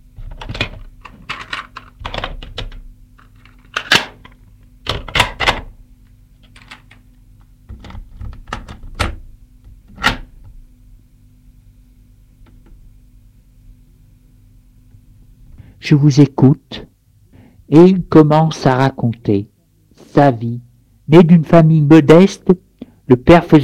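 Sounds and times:
tape recorder set down on an armchair armrest and readied: 0:00.2 - 0:05.8, 0:07.7 - 0:10.6
speech: 0:15.9 - 0:16.9, 0:17.7 - 0:19.5, 0:20.2 - 0:23.6.

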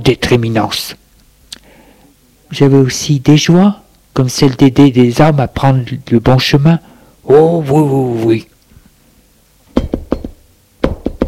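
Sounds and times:
speech: 0:00.0 - 0:01.0, 0:02.5 - 0:08.5
knocking on a door: 0:09.8 - 0:11.2.

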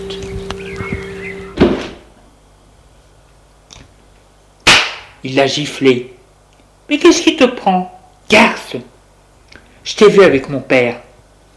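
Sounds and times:
door closing: 0:00.9 - 0:02.0
speech: 0:05.2 - 0:06.2, 0:06.9 - 0:08.9, 0:09.8 - 0:11.0.

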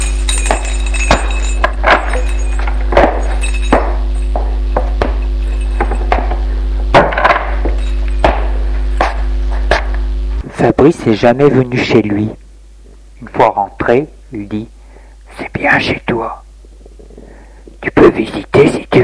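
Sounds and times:
keys jingling: 0:00.0 - 0:06.4, 0:07.5 - 0:08.3
low hum: 0:00.0 - 0:18.0
speech: 0:10.8 - 0:12.4, 0:13.2 - 0:14.8, 0:15.4 - 0:16.4, 0:18.2 - 0:18.5.

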